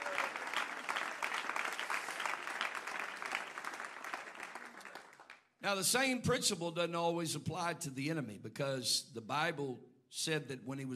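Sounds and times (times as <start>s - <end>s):
audience clapping hands: 0.0s - 5.6s
speech: 5.6s - 10.9s.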